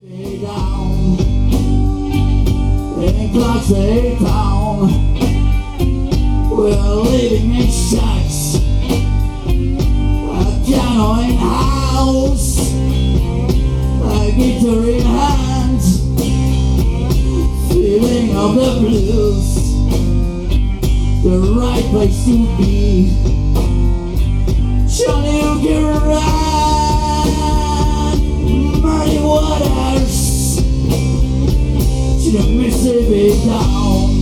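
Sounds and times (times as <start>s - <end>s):
Mississippi blues music: 0.0s - 34.2s.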